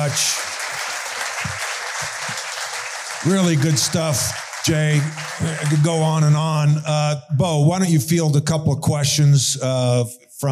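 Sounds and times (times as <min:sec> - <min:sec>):
speech: 0:00.0 - 0:00.6, 0:03.2 - 0:10.5
audience applause: 0:00.0 - 0:06.7.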